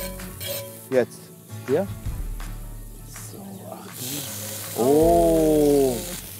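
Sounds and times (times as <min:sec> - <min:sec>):
meat sizzling in a frying pan next to onions: 0:00.4 - 0:02.0, 0:03.6 - 0:06.3
speech: 0:00.9 - 0:02.1, 0:04.8 - 0:05.5
person letting out a long drawn exclamation: 0:04.8 - 0:06.2.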